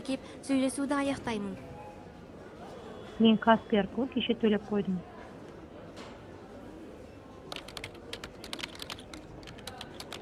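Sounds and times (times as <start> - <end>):
speech: 0.0 - 1.7, 3.2 - 5.1
rapid typing on a computer keyboard logging customer feedback: 7.5 - 10.2.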